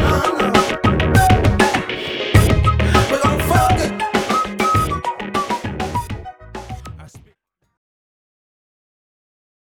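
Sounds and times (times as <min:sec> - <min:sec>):
funk machine beat: 0:00.0 - 0:07.3.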